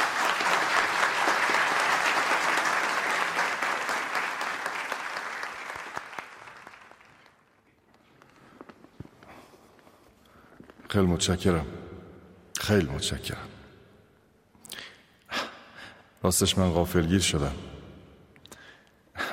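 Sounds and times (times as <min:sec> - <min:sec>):
crowd applause: 0:00.0 - 0:07.6
speech: 0:11.0 - 0:11.9, 0:12.7 - 0:13.6, 0:16.2 - 0:17.8.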